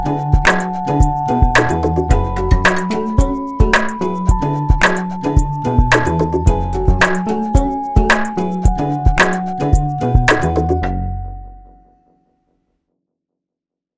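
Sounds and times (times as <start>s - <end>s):
hip hop breakbeats: 0.0s - 10.9s.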